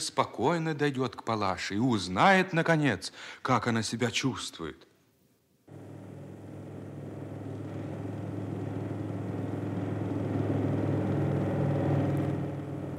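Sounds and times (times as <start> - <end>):
speech: 0.0 - 4.9
plane engine roaring while landing: 5.7 - 12.9.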